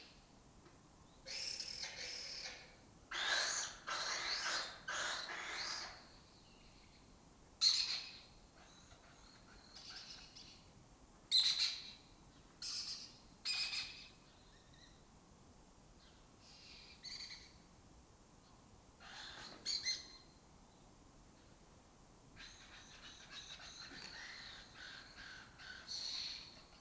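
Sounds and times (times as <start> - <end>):
lesser kestrels calling: 1.3 - 6.2, 7.6 - 10.7, 11.3 - 15.0, 16.0 - 17.6, 19.0 - 20.3, 22.4 - 26.8.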